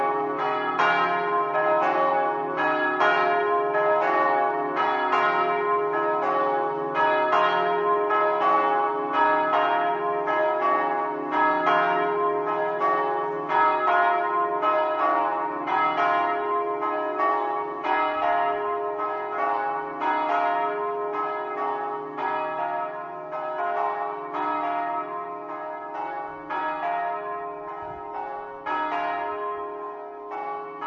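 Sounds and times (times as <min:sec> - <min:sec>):
bells ringing: 0:00.0 - 0:30.8.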